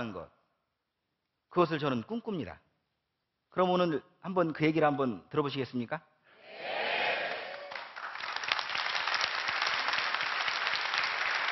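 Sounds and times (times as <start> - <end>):
speech: 0.0 - 0.4, 1.5 - 2.6, 3.5 - 6.9
audience applause: 6.9 - 11.4.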